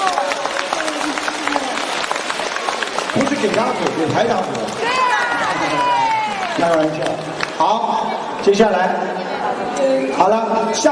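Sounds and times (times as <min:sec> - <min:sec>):
audience applause: 0:00.0 - 0:07.8
speech: 0:03.1 - 0:06.0, 0:06.6 - 0:10.9.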